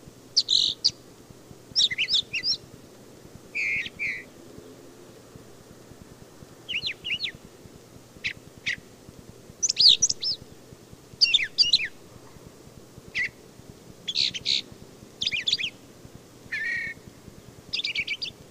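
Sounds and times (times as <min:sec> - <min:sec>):
low hum: 0:00.0 - 0:18.4
brown thrasher singing: 0:00.4 - 0:01.0, 0:01.7 - 0:02.6, 0:03.5 - 0:04.4, 0:06.7 - 0:07.4, 0:08.2 - 0:08.9, 0:09.6 - 0:10.5, 0:11.2 - 0:12.0, 0:13.1 - 0:13.4, 0:14.0 - 0:15.8, 0:16.5 - 0:18.4.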